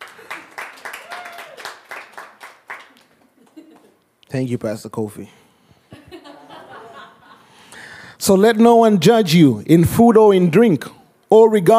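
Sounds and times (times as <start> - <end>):
audience hand clapping: 0.0 - 4.0
laughter: 3.2 - 4.0, 5.9 - 7.6
speech: 4.3 - 5.4, 8.2 - 11.7.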